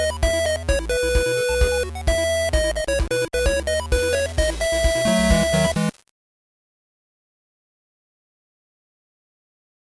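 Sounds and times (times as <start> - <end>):
8-bit chiptune: 0.0 - 6.0.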